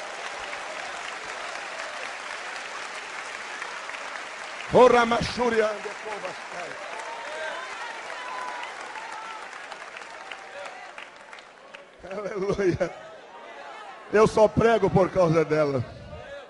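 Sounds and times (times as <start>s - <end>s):
audience applauding: 0.0s - 12.9s
speech: 4.7s - 7.0s, 12.1s - 13.0s, 14.1s - 16.0s.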